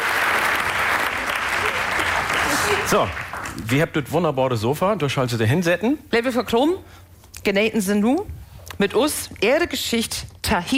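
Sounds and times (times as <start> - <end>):
audience applause as a guest walks onto the stage: 0.0 - 3.8
speech: 2.9 - 10.7.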